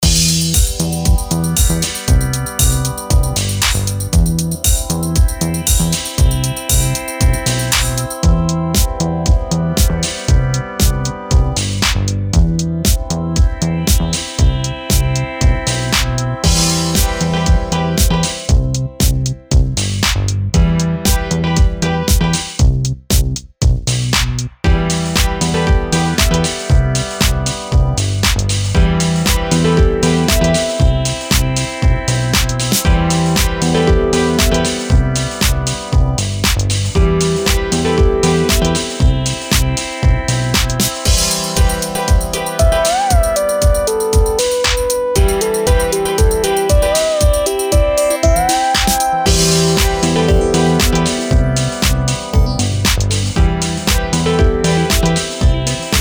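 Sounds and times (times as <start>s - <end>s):
music beat: 0.0s - 56.0s.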